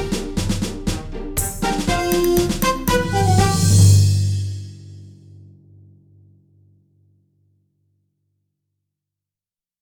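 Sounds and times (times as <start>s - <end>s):
orchestral music: 0.0s - 5.0s.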